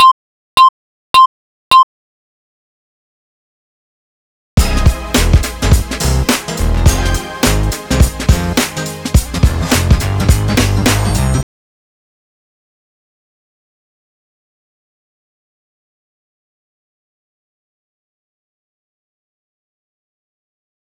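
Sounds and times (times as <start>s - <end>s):
sweet intro music: 4.6s - 11.4s.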